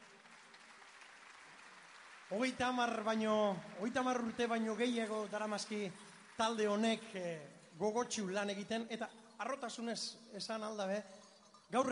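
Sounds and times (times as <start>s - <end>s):
applause: 0.0s - 8.3s
speech: 2.3s - 11.9s.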